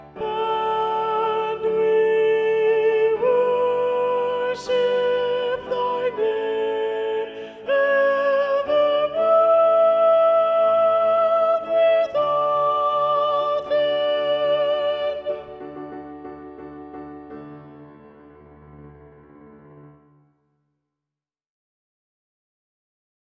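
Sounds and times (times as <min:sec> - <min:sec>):
soprano singing: 0:00.0 - 0:16.8.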